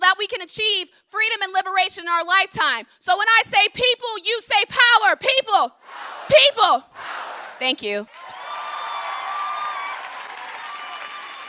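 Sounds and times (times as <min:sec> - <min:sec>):
speech: 0:00.4 - 0:08.2
crowd cheering and shouting after speech: 0:05.8 - 0:11.4
crowd applauding after speech: 0:08.1 - 0:11.4.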